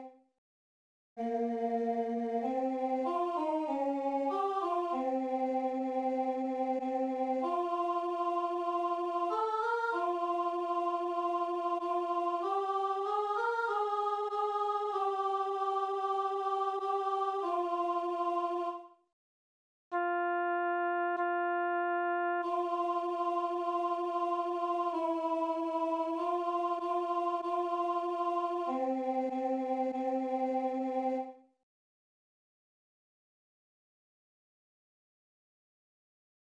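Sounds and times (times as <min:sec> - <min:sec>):
alto voice singing: 0:01.2 - 0:18.9, 0:20.0 - 0:31.4.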